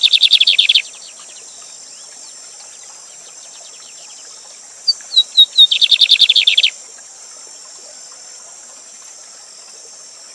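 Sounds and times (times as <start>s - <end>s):
Lined seedeater song of whistles and buzzy trill: 0.0s - 0.8s, 4.9s - 6.7s
constant high hiss: 0.0s - 10.3s.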